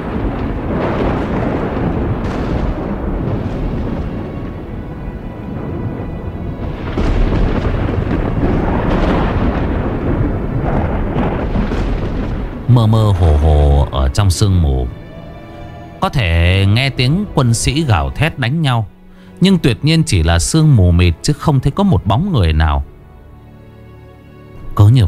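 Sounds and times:
heavy crashing booms of lightning strikes: 0.0 - 18.5
deep rolling thunder: 0.0 - 23.8
speech: 12.8 - 15.0, 16.0 - 22.9, 24.8 - 25.0.

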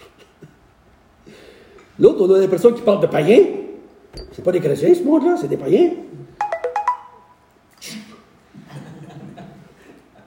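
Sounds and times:
speech: 2.0 - 3.6, 4.4 - 6.2
notification chime from a computer left on: 6.4 - 7.4
laughter: 8.6 - 10.2.

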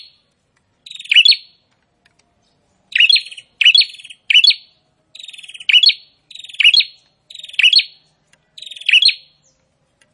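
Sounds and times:
prinia song of whistled notes and harsh chirps: 0.0 - 10.1.

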